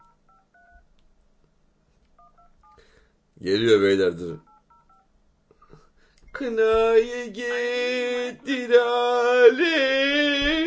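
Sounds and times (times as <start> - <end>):
telephone dialing tones: 0.0 - 0.8, 4.5 - 5.1
speech: 3.4 - 4.5, 6.4 - 10.6.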